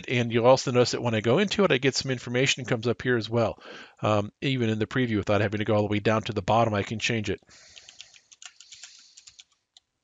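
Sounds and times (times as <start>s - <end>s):
speech: 0.0s - 7.7s
quiet typing on a computer keyboard: 7.7s - 9.9s.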